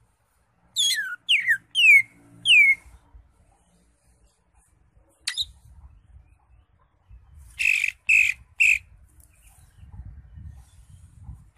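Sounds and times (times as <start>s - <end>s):
Greater Green Leafbird singing varied phrases: 0.7s - 2.9s, 5.2s - 5.6s, 7.1s - 9.6s.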